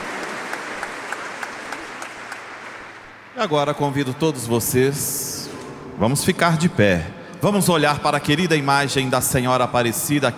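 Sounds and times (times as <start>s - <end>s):
crowd applause: 0.0s - 3.4s
speech: 3.4s - 5.3s, 6.0s - 10.3s.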